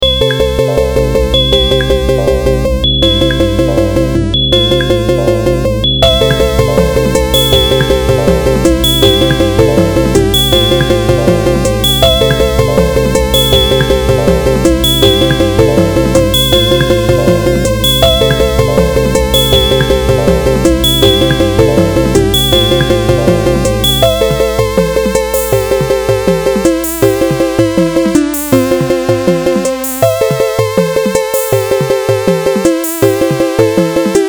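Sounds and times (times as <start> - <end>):
music beat: 0.0 - 34.2.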